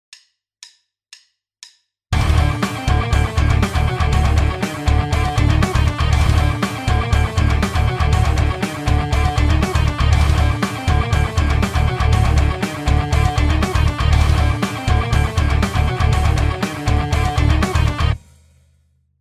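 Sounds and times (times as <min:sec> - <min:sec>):
rhythm: 0:02.2 - 0:18.2.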